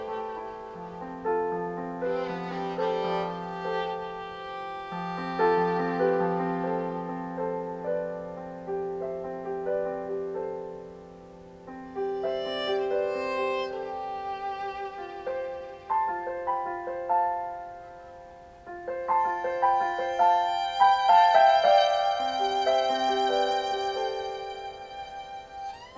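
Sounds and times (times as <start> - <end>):
violin improvisation: 0.0 - 7.8, 12.1 - 16.5, 19.2 - 25.9
piano improvisation: 0.0 - 25.9.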